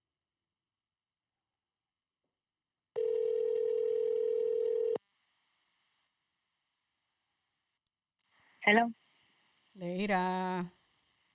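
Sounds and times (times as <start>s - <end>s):
telephone tone while placing a call: 3.0s - 5.0s
speech: 8.7s - 9.0s, 9.8s - 10.8s.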